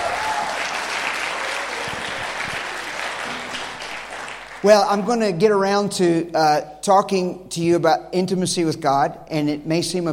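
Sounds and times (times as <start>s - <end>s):
audience clapping: 0.0s - 5.0s
speech: 4.6s - 10.1s.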